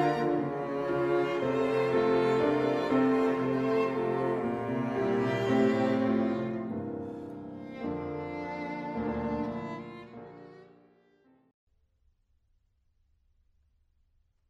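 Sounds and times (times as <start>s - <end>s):
piano quintet second movement: 0.0s - 10.8s.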